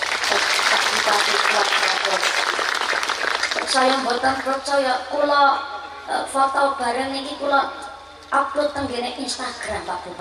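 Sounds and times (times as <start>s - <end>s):
audience applause: 0.0s - 4.6s
speech: 1.1s - 2.5s, 3.7s - 10.1s.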